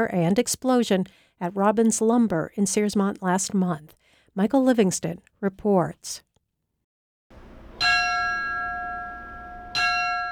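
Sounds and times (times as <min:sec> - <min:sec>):
speech: 0:00.0 - 0:06.3
fire department bell ringing last alarm: 0:07.4 - 0:10.3.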